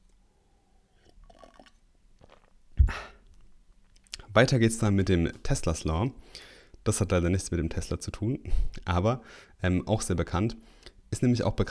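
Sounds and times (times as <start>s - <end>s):
person taking a quick sip of water: 0.8s - 4.3s
speech: 4.4s - 11.6s.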